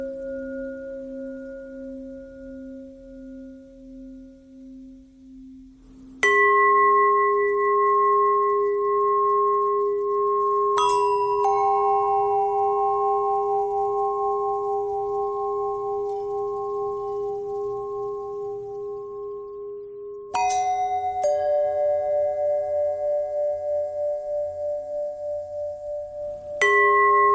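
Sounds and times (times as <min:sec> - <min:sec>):
long pentatonic bell tones: 0:06.2 - 0:27.3.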